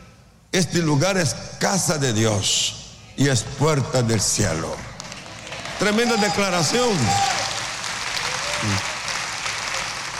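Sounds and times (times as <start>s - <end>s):
speech: 0.6s - 4.9s, 5.8s - 7.3s, 8.6s - 8.9s
audience applause: 5.0s - 10.1s.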